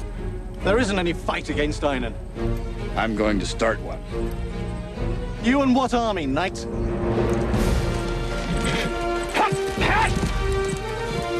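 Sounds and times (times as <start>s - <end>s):
sustained tonal music: 0.0s - 11.3s
speech: 0.6s - 7.4s
horse hooves as a knight rides up a hill: 7.3s - 11.3s.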